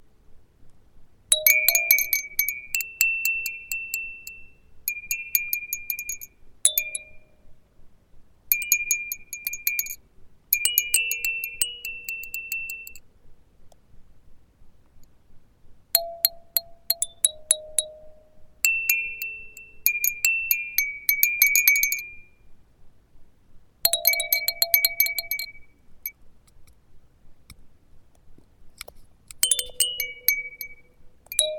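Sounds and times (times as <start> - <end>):
chime: 1.3 - 7.5, 8.5 - 10.0, 10.6 - 13.0, 16.0 - 22.4, 23.9 - 25.8, 29.4 - 31.5.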